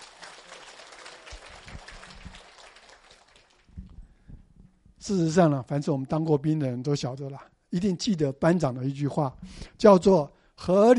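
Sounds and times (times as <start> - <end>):
audience clapping hands: 0.0 - 3.8
speech: 5.0 - 10.9.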